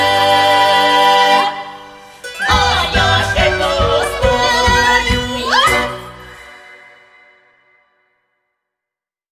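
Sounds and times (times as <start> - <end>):
Ukrainian folk group performing: 0.0 - 6.8.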